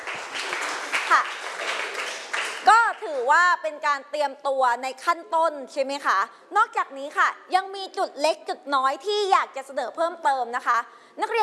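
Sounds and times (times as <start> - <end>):
students in a class clapping for two classmates: 0.0 - 3.2
speech: 1.1 - 11.4.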